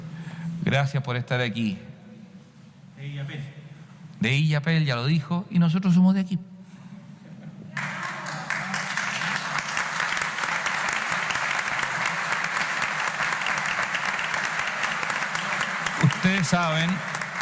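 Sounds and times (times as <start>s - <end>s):
speech: 0.6s - 1.9s, 3.0s - 3.6s, 4.2s - 6.5s, 16.4s - 17.2s
applause: 7.8s - 17.4s.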